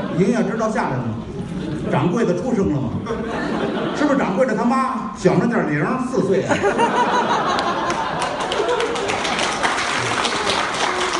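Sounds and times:
laughter: 0.0 - 0.7, 1.3 - 4.7, 6.4 - 11.1
speech: 0.2 - 7.5
audience clapping: 7.4 - 11.1.

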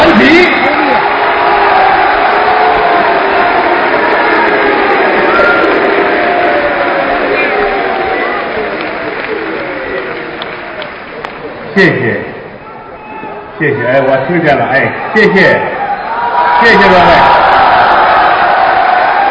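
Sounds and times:
audience cheering: 0.0 - 11.6, 12.7 - 19.3
warm audience applause: 0.0 - 11.9, 16.1 - 19.3
speech: 13.7 - 15.7, 16.6 - 17.4.

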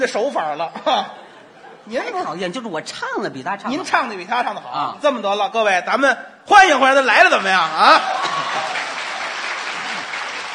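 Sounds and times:
speech: 0.0 - 1.2, 1.8 - 8.7
laughter: 0.7 - 2.2, 7.6 - 10.2
audience applause at a Chinese comedy show: 7.4 - 10.5.

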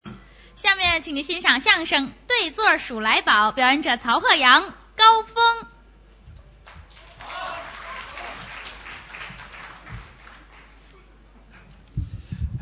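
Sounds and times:
speech: 0.6 - 5.7
audience applause: 6.6 - 10.9.

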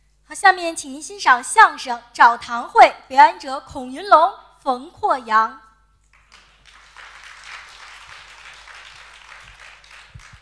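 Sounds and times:
speech: 0.4 - 5.6
audience applause: 6.1 - 10.4.

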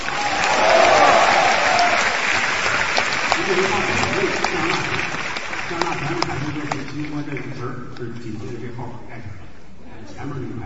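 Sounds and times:
audience applause: 0.0 - 7.5.

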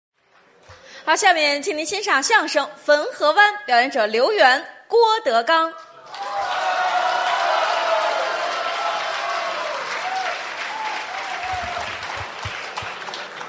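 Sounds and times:
speech: 1.1 - 5.9
large audience applause: 6.0 - 13.4
faint cheering voices: 6.1 - 13.4.

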